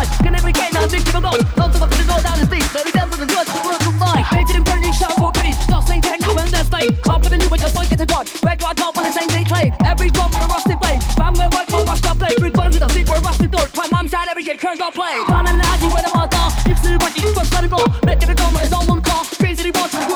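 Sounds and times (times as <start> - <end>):
dirty phonk music: 0.0 - 20.1.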